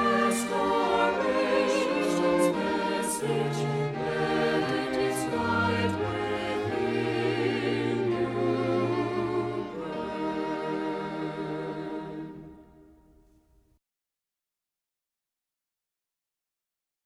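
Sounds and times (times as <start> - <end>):
hymn with voices and instruments: 0.0 - 13.0.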